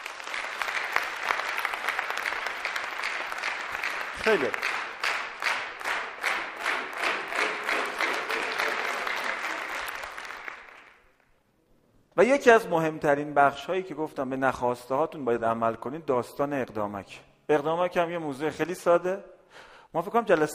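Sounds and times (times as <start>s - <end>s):
crowd applause: 0.0s - 11.2s
speech: 4.2s - 4.8s, 12.2s - 20.5s.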